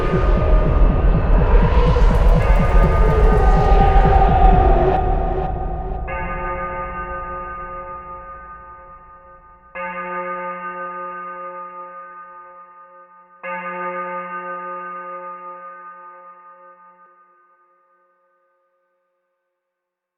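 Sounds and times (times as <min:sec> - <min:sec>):
instrumental remix: 0:00.0 - 0:09.1.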